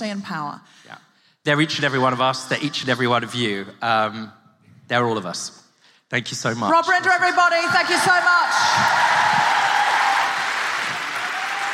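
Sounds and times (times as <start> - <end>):
speech: 0.0 - 9.6
audience applause: 7.8 - 11.7.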